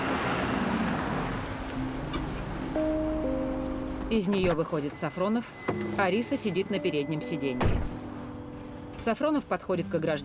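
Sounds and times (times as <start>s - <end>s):
car driving over bridge and stopping: 0.0s - 6.8s
speech: 4.1s - 7.9s, 9.0s - 10.2s.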